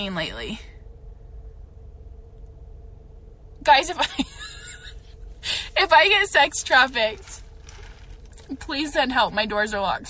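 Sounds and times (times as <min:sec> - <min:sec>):
speech: 0:00.0 - 0:00.7, 0:03.6 - 0:04.5, 0:05.4 - 0:07.4, 0:08.5 - 0:10.0
truck driving past with faint low engine rumble: 0:04.4 - 0:10.0.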